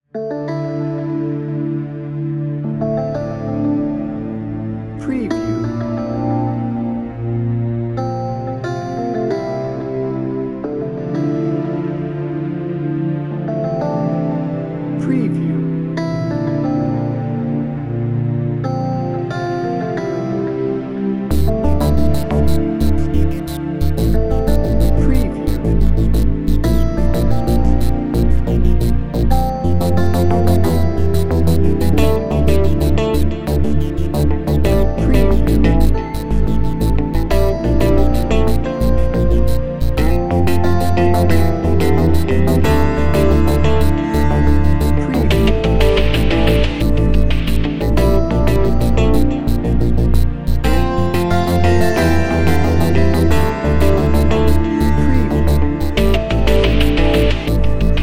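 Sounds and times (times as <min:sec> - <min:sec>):
somber music without drums: 0:00.2 - 0:58.0.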